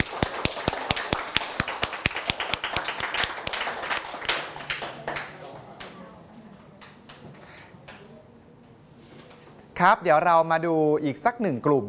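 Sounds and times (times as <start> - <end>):
students clapping: 0.0 - 6.0
speech: 9.8 - 11.8.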